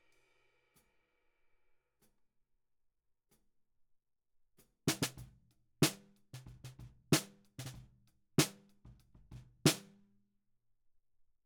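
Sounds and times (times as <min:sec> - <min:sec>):
snare drum recorded from the bottom at 94 bpm: 0:04.9 - 0:09.9.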